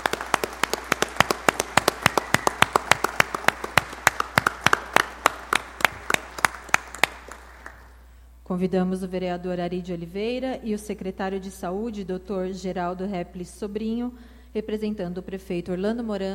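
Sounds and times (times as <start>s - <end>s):
applause from a small audience: 0.0s - 8.0s
speech: 8.5s - 16.3s.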